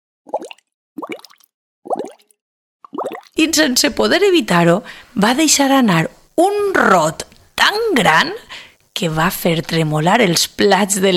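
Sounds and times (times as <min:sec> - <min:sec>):
stomach gurgling after fizzy lemonade: 0:00.3 - 0:03.4
speech: 0:03.4 - 0:11.1.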